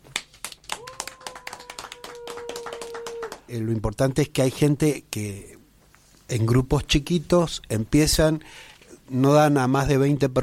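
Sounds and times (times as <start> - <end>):
applause, hands clapping: 0.0 - 3.5
speech: 3.5 - 5.5, 6.3 - 10.4.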